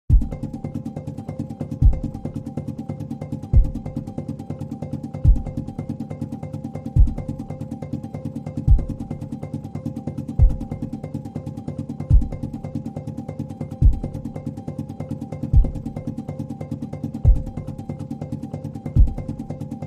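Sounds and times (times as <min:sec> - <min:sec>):
drum pulses: 0:00.1 - 0:02.6, 0:03.4 - 0:04.2, 0:05.2 - 0:06.1, 0:06.9 - 0:07.6, 0:08.4 - 0:09.4, 0:10.3 - 0:11.1, 0:12.0 - 0:12.9, 0:13.7 - 0:14.4, 0:15.4 - 0:16.2, 0:17.2 - 0:17.9, 0:19.0 - 0:19.6.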